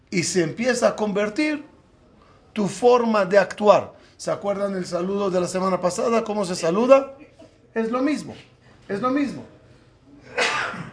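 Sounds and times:
speech: 0:00.1 - 0:01.7, 0:02.6 - 0:09.6
sneeze: 0:10.2 - 0:10.9.

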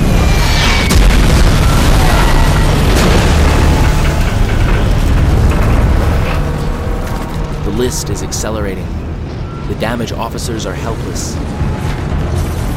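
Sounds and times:
bomb strike explosion beside the smokestacks of a warship: 0:00.0 - 0:08.2
crackling debris from a bomb strike on a warship: 0:00.0 - 0:12.7
speech: 0:07.9 - 0:09.0, 0:09.7 - 0:11.8.

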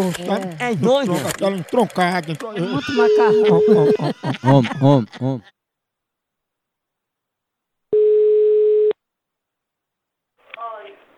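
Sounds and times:
laughter: 0:00.0 - 0:05.5
speech: 0:00.0 - 0:05.6
telephone ringback tone while a call is being placed: 0:02.9 - 0:04.0, 0:07.9 - 0:08.9.

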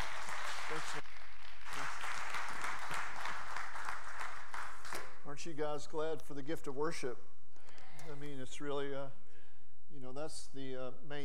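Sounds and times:
audience applause: 0:00.0 - 0:05.0
speech: 0:00.7 - 0:01.0, 0:05.4 - 0:07.3, 0:08.0 - 0:09.2, 0:09.9 - 0:11.2.

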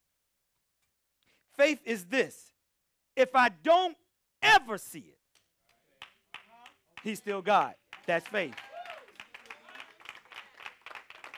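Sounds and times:
speech: 0:01.6 - 0:02.5, 0:03.2 - 0:05.2, 0:07.0 - 0:08.7
audience clapping: 0:06.0 - 0:11.3.

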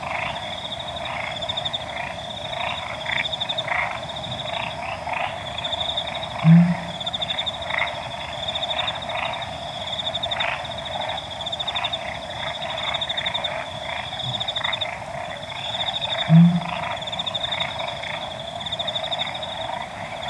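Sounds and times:
frog chorus croaking: 0:00.0 - 0:20.2
high insect whine: 0:00.0 - 0:20.2
Pel's fishing owl hooting: 0:16.3 - 0:16.9.

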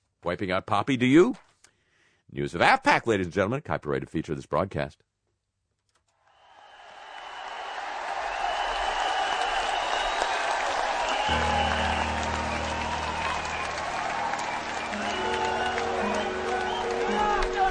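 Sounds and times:
speech: 0:00.2 - 0:01.5, 0:02.3 - 0:05.1
applause: 0:06.3 - 0:17.6.

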